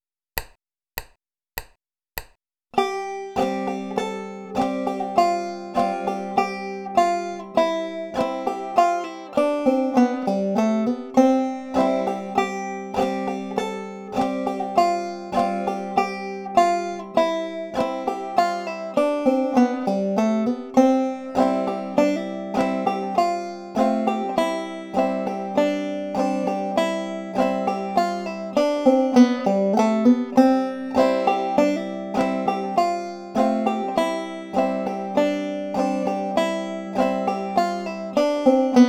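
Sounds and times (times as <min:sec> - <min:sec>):
banjo playing with hammer-ons and pull-offs: 0:02.8 - 0:38.8.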